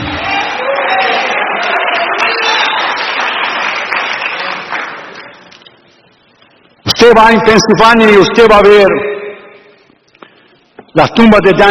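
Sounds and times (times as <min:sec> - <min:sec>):
church congregation applause during a sermon: 0:00.0 - 0:05.6
speech: 0:07.0 - 0:09.1, 0:10.9 - 0:11.6.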